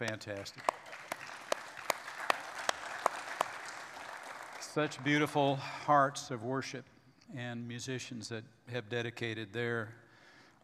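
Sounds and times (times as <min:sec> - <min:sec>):
speech: 0:00.0 - 0:00.9, 0:04.7 - 0:10.0
hand claps: 0:00.0 - 0:05.4
hiss: 0:00.0 - 0:10.6.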